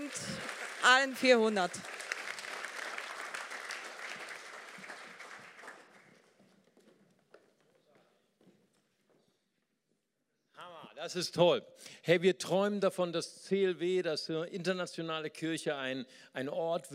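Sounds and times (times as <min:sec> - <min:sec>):
large audience applause: 0:00.0 - 0:06.4
speech: 0:00.2 - 0:02.0, 0:11.1 - 0:16.9.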